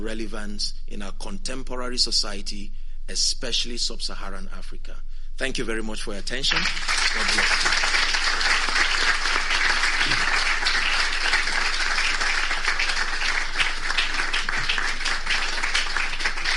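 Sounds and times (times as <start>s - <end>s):
speech: 0.0s - 8.0s
audience applause after a speech: 6.5s - 16.5s.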